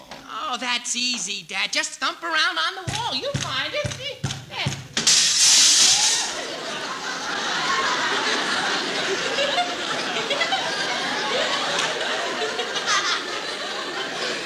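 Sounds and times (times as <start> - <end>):
speech: 0.5 - 4.8
window glass breaking: 5.0 - 6.3
laughter: 5.9 - 14.4.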